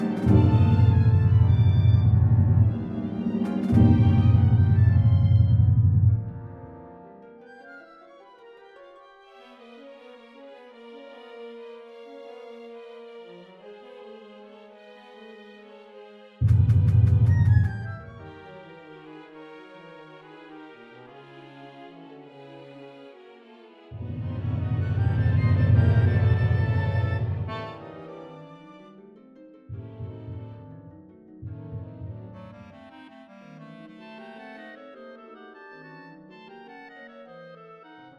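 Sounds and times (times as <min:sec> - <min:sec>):
MIDI realization music: 0:00.0 - 0:07.0, 0:16.4 - 0:18.8, 0:24.0 - 0:34.0.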